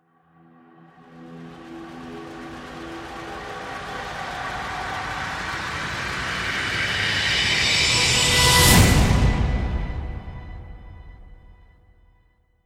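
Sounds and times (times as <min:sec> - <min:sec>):
risers: 0:01.2 - 0:10.9.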